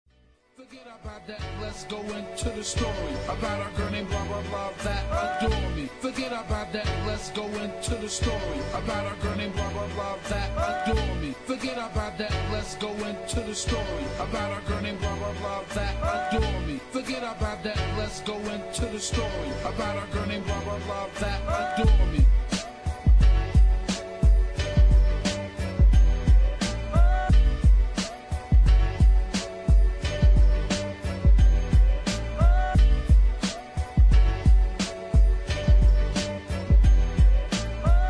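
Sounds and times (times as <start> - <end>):
vocals on hook: 0.6 - 23.0, 26.6 - 27.5, 32.3 - 33.0
old school sampled rap beat: 0.6 - 38.0.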